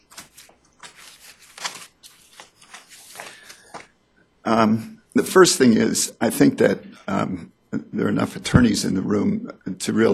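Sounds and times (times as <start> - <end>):
paper pages flipping: 0.0 - 4.0
speech: 4.5 - 10.1.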